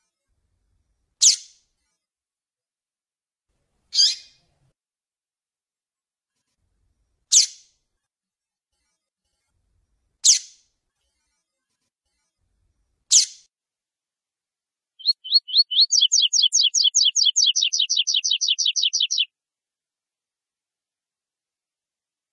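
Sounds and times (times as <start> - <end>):
double-collared seedeater singing high clipped downward-sweeping notes: 15.0 - 19.3.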